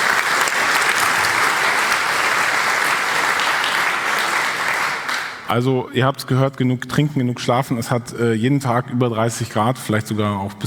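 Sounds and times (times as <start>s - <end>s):
audience applause: 0.0s - 5.5s
speech: 5.5s - 10.6s.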